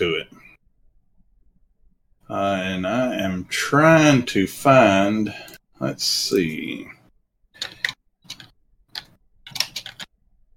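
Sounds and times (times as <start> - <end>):
speech: 2.3 - 7.0
computer keyboard typing: 7.6 - 10.1.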